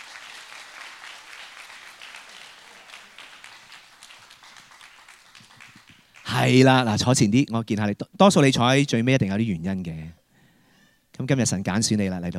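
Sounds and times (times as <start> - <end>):
crowd applause: 0.0 - 6.5
speech: 6.4 - 10.2, 11.2 - 12.3.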